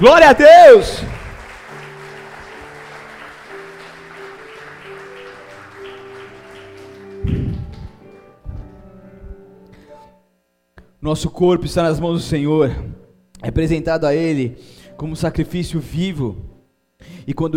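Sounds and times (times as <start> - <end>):
speech: 0.0 - 1.1, 11.0 - 17.5
audience clapping: 0.7 - 8.3
sustained keyboard chords: 1.0 - 10.2.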